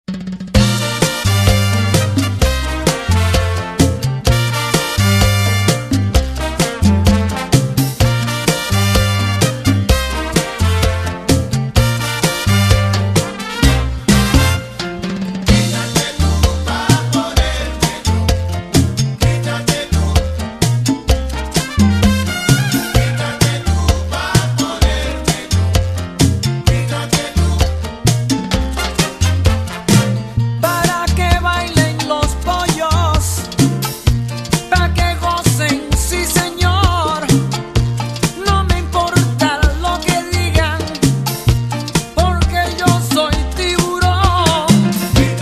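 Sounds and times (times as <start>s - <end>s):
cha cha cha music: 0.1s - 45.4s.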